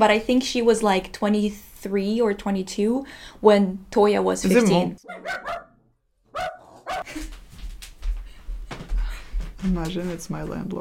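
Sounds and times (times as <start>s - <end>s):
speech: 0.0s - 5.7s, 9.6s - 10.7s
dog barking: 5.0s - 7.1s.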